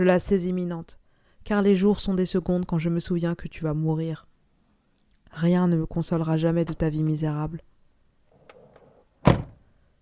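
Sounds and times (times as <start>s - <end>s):
speech: 0.0s - 4.3s, 5.3s - 7.7s
car door slamming: 9.2s - 9.6s.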